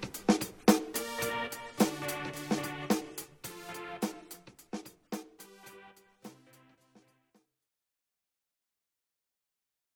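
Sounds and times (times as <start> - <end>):
microKORG synthesizer: 0.9 - 4.6, 5.4 - 7.4.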